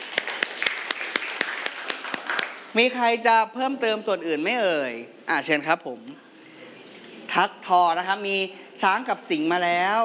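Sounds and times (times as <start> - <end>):
children clapping for a classmate in a class: 0.0 - 2.7
speech: 2.8 - 6.3, 7.4 - 10.0.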